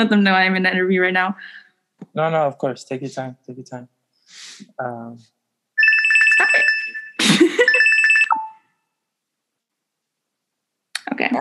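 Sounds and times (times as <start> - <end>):
speech: 0.0 - 5.4, 11.1 - 11.4
phone ringing with a rapid trilling electronic tone: 5.8 - 8.7.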